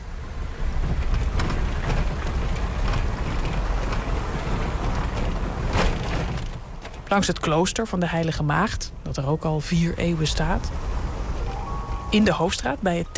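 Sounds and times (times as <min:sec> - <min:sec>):
car driving on a cobbled street: 0:00.0 - 0:07.6, 0:09.8 - 0:12.8
speech: 0:07.1 - 0:10.9, 0:12.1 - 0:13.1.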